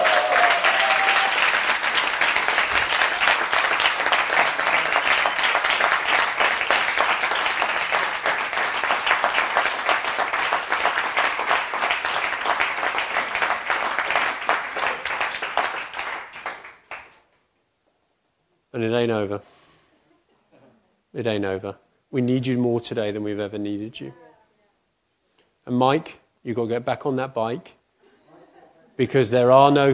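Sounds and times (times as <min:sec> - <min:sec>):
audience applause: 0:00.0 - 0:17.2
speech: 0:19.0 - 0:19.5, 0:21.2 - 0:24.2, 0:25.7 - 0:27.8, 0:29.0 - 0:29.9.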